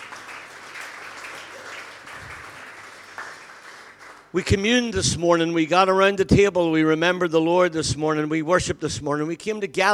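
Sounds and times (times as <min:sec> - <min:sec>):
audience applause: 0:00.0 - 0:04.3
speech: 0:04.3 - 0:09.9.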